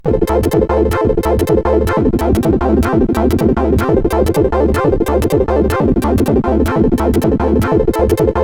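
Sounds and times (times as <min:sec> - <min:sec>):
MOS 8580 chiptune synth music: 0:00.0 - 0:08.4.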